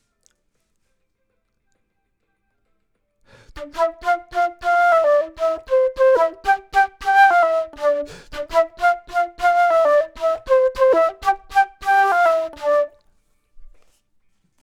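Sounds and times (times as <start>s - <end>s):
flute: 3.4s - 13.1s.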